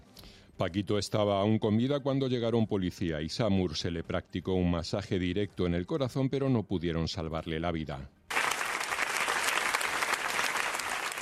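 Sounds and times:
speech: 0.6s - 8.2s
applause from a protest gathering: 8.3s - 11.1s.

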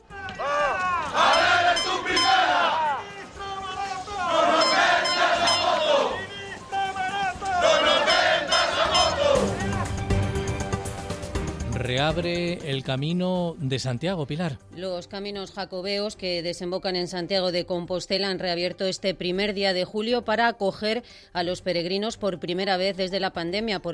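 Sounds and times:
protesters chanting and shouting: 0.0s - 10.6s
crowd babble: 0.0s - 10.8s
speech: 12.1s - 23.9s.

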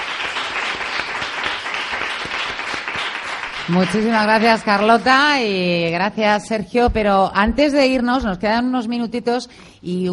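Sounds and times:
audience applause: 0.0s - 4.8s
speech: 3.7s - 10.1s.

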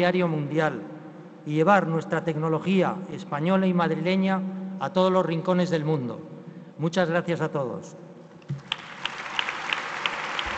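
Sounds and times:
speech: 0.0s - 8.6s
audience applause at a ceremony honoring a Spanish railway company: 8.6s - 10.5s.

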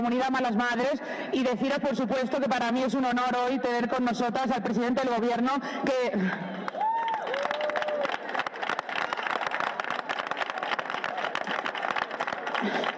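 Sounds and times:
speech: 0.0s - 6.5s
audience applause at a Malas Madres community event: 6.6s - 12.9s.

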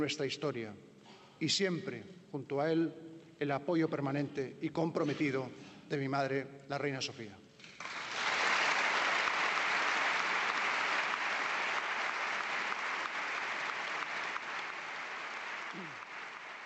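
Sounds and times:
speech: 0.0s - 7.4s
large assembly applauding: 7.7s - 16.6s.

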